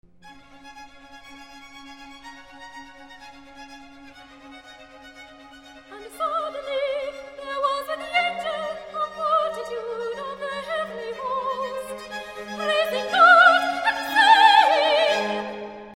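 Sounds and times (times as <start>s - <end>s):
soprano singing recitative: 5.9s - 15.9s.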